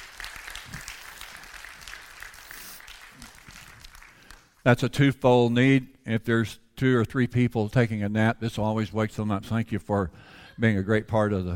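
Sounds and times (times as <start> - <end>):
crowd clapping: 0.0 - 4.6
speech: 4.6 - 11.5.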